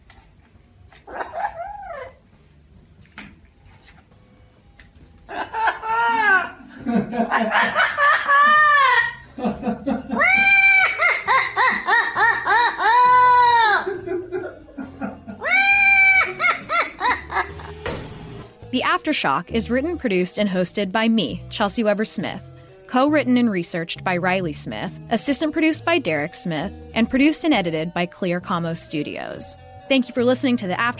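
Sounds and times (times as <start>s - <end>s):
parrot squawk: 1.0s - 2.3s, 10.1s - 13.9s, 15.4s - 17.7s
parrot cackling wildly: 1.0s - 2.4s, 5.3s - 9.4s, 10.0s - 14.6s, 15.2s - 17.8s
speech: 19.2s - 30.9s.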